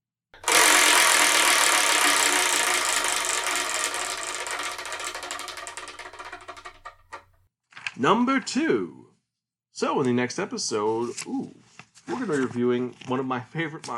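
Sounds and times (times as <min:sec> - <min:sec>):
prize wheel pointer ratcheting against pegs: 0:00.4 - 0:07.4
speech: 0:08.0 - 0:09.1, 0:09.8 - 0:13.9.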